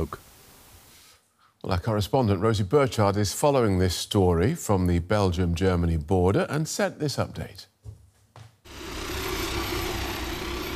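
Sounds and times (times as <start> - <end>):
speech: 0.0 - 0.2, 1.6 - 7.7
firefighting plane engine: 8.7 - 10.7.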